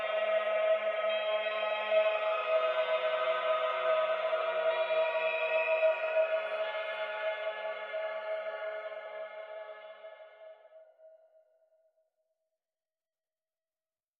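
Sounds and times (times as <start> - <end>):
ambient music mix: 0.0 - 10.9.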